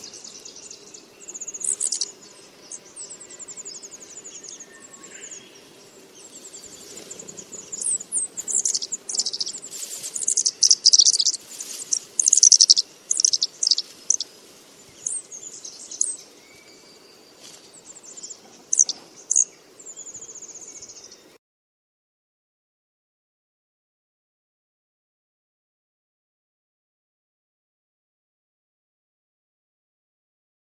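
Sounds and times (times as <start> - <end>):
blue flycatcher alarm calls: 0.0 - 20.7.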